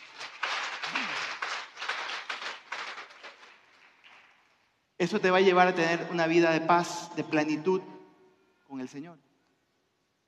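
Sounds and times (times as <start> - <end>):
audience applauding: 0.0 - 4.6
speech: 5.0 - 8.0, 8.7 - 9.3.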